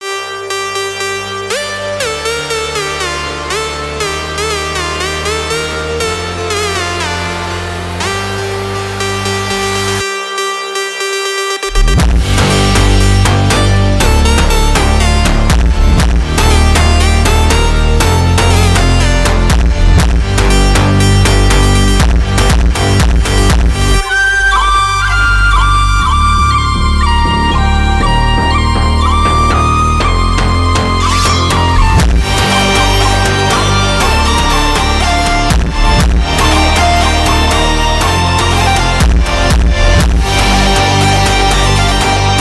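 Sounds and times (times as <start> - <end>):
phonk music: 0.0 - 42.3.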